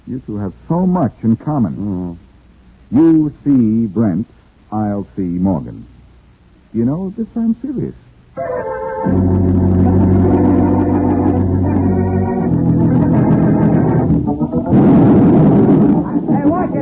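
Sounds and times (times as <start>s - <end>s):
sharp burst of crackling noise: 0.0s - 16.7s
speech: 0.1s - 2.2s, 2.9s - 6.0s, 6.7s - 10.0s
overloaded blasting charge exploding with deep booming rumble: 14.0s - 16.7s.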